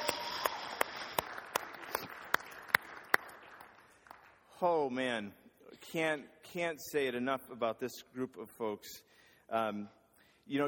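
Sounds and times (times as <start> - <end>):
rhythmic audience clapping: 0.0 - 4.8
speech: 4.6 - 10.6.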